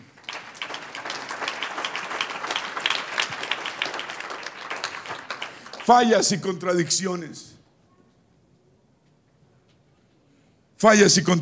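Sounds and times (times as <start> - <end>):
crowd applauding: 0.0 - 6.7
speech: 5.9 - 7.6, 10.8 - 11.4.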